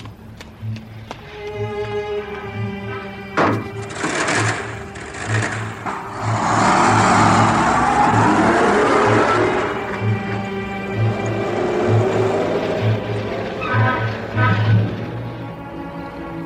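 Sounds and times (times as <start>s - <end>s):
car engine idling, revving and driving off: 3.6s - 16.4s.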